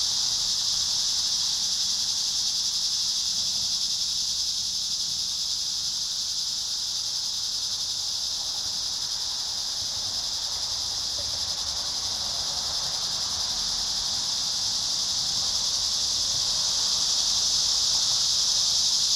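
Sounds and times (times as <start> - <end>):
cicada chorus buzzing: 0.0 - 19.1.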